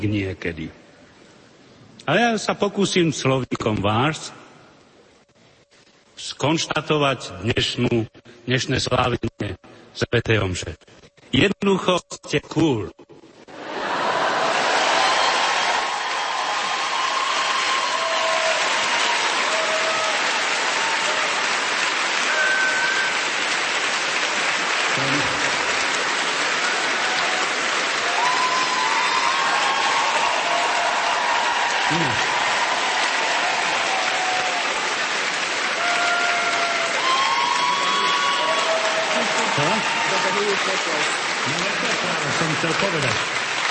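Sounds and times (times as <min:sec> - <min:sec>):
speech: 0:00.0 - 0:00.8, 0:02.1 - 0:04.4, 0:06.2 - 0:13.1
audience applauding: 0:13.5 - 0:43.6.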